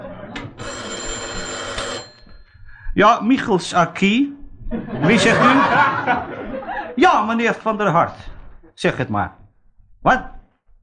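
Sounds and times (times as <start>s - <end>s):
laughter: 0.0s - 0.6s, 4.7s - 7.3s
old-fashioned telephone bell ringing: 0.4s - 2.6s
speech: 3.0s - 9.4s, 10.0s - 10.4s.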